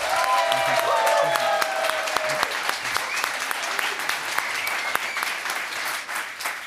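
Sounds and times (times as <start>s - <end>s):
audience applause: 0.0s - 6.6s
faint tonal whistle or cheer: 4.3s - 5.5s.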